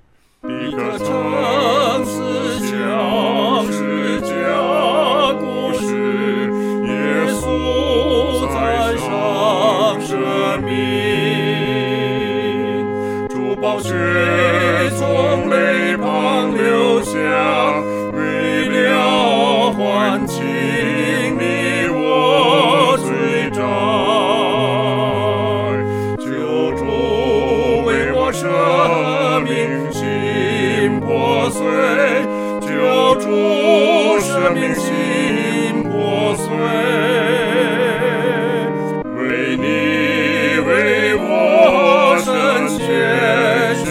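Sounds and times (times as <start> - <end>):
two-part choir singing: 0.4 - 43.8.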